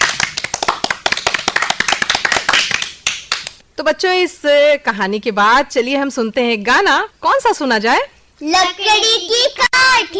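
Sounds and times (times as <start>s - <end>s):
loud applause: 0.0s - 3.5s
speech: 3.8s - 10.1s.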